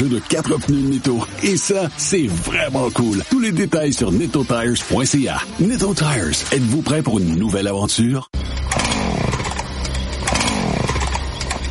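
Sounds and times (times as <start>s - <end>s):
speech: 0.0s - 8.4s
chainsaw being started, engine revving: 8.7s - 11.3s.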